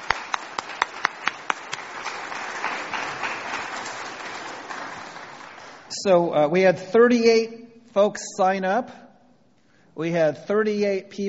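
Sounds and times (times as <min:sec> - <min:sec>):
audience applause: 0:00.0 - 0:05.9
speech: 0:06.0 - 0:09.0, 0:10.0 - 0:11.2.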